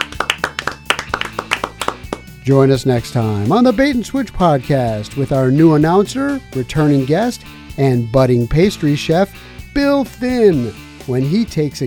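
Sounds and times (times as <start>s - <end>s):
hands clapping: 0.0s - 2.4s
speech: 2.4s - 11.8s.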